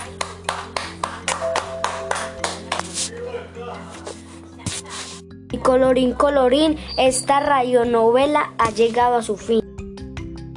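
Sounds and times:
applause: 0.0 - 3.0
speech: 5.5 - 9.6.

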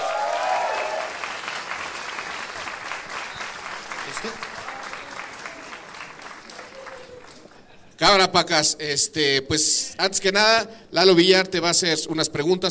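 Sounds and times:
audience applause: 0.0 - 7.6
speech: 4.2 - 4.5, 8.0 - 12.6.

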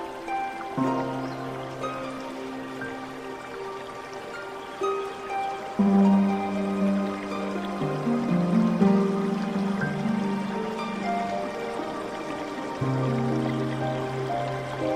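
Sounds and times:
faint trickle of water: 0.0 - 14.9
slow zen music with long held low tones: 0.0 - 14.9.

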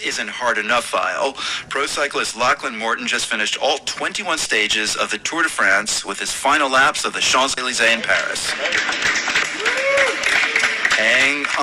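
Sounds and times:
speech: 0.0 - 10.4, 11.0 - 11.6
small crowd clapping at finish line: 7.5 - 11.6.

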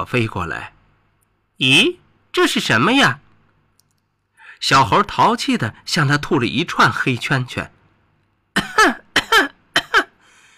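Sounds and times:
speech: 0.0 - 0.8, 1.6 - 3.2, 4.6 - 7.8, 8.8 - 9.0
person imitating coughing: 8.6 - 10.2.

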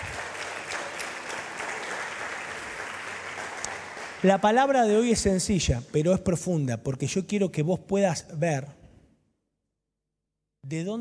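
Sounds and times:
audience applause: 0.0 - 4.5
speech: 4.2 - 8.8, 10.7 - 10.9.

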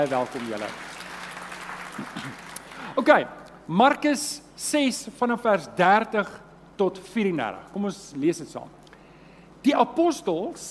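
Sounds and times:
speech: 0.0 - 0.9, 2.0 - 8.8, 9.6 - 10.6
group of people clapping: 0.0 - 3.0.

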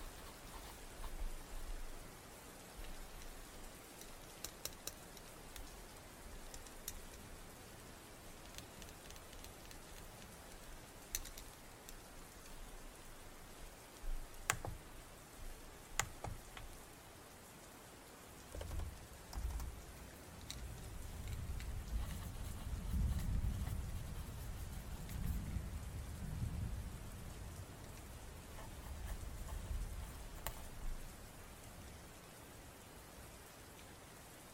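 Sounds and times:
steady rain: 0.0 - 34.5
faint thunder rumble: 20.5 - 30.2.

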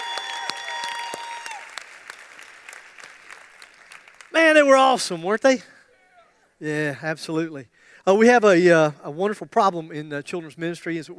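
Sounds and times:
audience applause: 0.0 - 4.8
speech: 4.3 - 5.8, 6.6 - 11.1.

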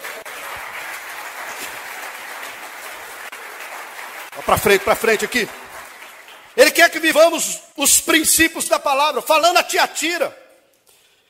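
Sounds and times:
audience applauding: 0.0 - 7.2
speech: 4.4 - 5.6, 6.6 - 10.4.

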